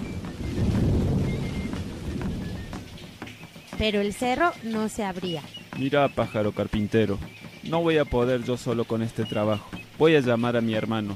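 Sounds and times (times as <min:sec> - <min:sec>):
thunderclap rumbling: 0:00.0 - 0:05.5
rain patter: 0:00.0 - 0:11.1
speech: 0:03.8 - 0:11.1.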